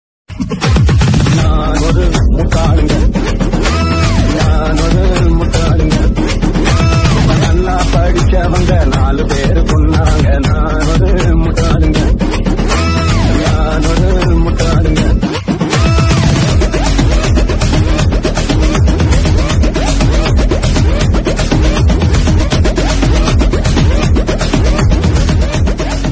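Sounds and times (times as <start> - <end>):
background music: 0.3 - 26.1.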